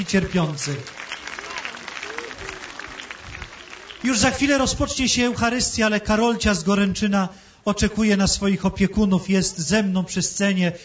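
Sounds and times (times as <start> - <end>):
speech: 0.0 - 1.1, 4.0 - 10.8
crowd applause near a stage at a gathering before Mass: 0.0 - 5.0.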